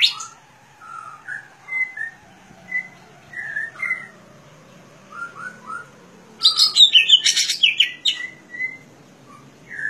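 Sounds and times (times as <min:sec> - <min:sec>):
leafbird singing chirping warbled notes: 0:00.0 - 0:09.8.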